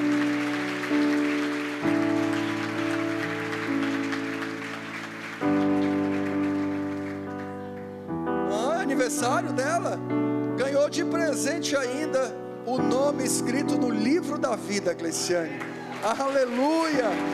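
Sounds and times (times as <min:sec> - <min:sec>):
audience applauding: 0:00.0 - 0:09.8, 0:13.6 - 0:17.3
speech: 0:09.2 - 0:17.3.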